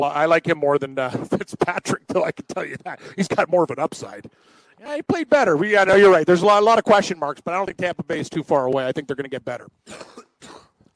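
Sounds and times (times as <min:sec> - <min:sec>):
speech: 0:00.0 - 0:10.6
person sneezing: 0:09.9 - 0:10.8.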